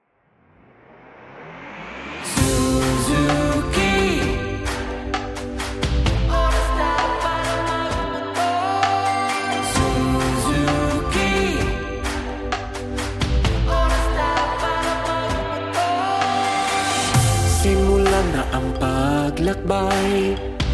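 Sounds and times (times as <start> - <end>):
jingle: 2.4 - 20.6.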